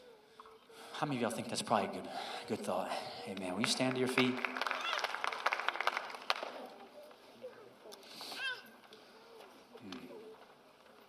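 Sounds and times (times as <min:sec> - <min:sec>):
speech: 0:01.0 - 0:04.6
audience clapping: 0:03.3 - 0:07.2.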